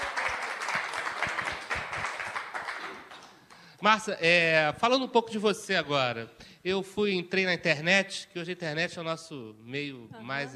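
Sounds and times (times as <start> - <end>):
audience applause: 0.0 - 3.7
speech: 3.8 - 10.5.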